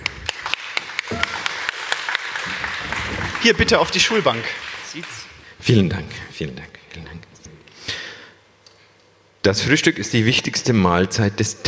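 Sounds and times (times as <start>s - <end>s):
audience applause: 0.0s - 5.6s
speech: 3.4s - 7.2s, 9.4s - 11.6s.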